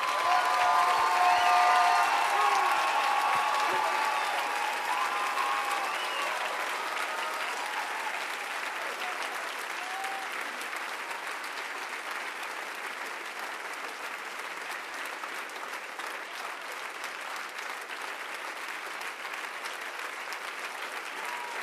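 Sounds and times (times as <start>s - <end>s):
audience applause: 0.0s - 21.6s.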